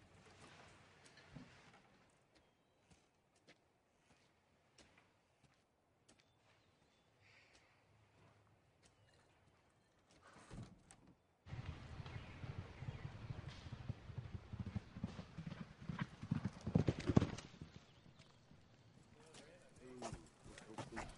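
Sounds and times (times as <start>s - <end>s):
racehorse hooves galloping during a track workout: 11.5s - 21.1s.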